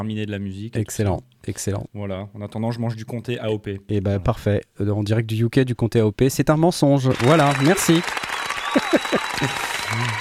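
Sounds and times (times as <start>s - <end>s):
speech: 0.0s - 10.1s
crowd applauding: 7.1s - 10.1s
laughter: 8.6s - 10.1s.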